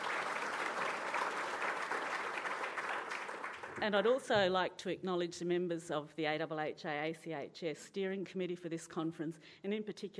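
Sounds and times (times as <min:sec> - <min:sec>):
audience applause: 0:00.0 - 0:03.8
speech: 0:03.8 - 0:10.1.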